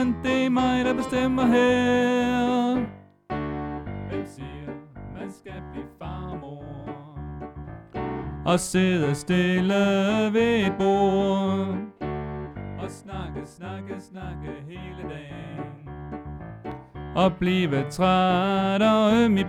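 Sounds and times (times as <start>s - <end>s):
tenor singing: 0.0s - 3.0s, 4.0s - 7.5s, 8.5s - 12.1s, 12.8s - 16.0s, 17.2s - 19.4s.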